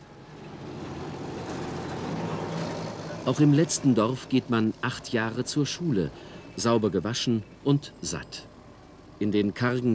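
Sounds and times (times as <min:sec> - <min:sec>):
tractor engines rumbling in village traffic: 0:00.0 - 0:09.9
speech: 0:03.2 - 0:08.5, 0:09.2 - 0:09.9.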